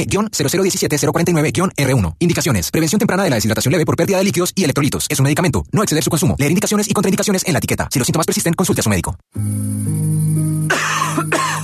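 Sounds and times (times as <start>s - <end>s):
speech: 0.0s - 10.0s
person coughing hard and rasping: 10.7s - 11.6s.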